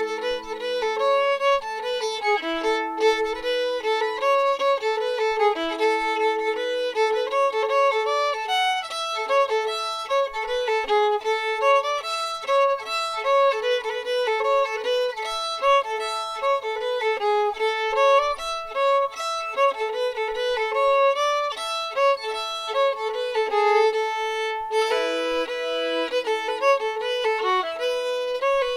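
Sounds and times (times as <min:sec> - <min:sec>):
fiddle playing in A: 0:00.0 - 0:28.7.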